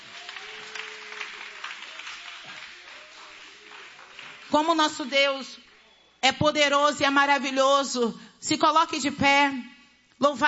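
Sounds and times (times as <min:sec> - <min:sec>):
audience applause: 0:00.0 - 0:04.6
speech: 0:04.5 - 0:10.4.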